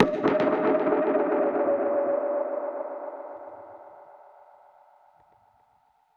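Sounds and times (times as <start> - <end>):
dub percussion hit: 0.0 - 4.4.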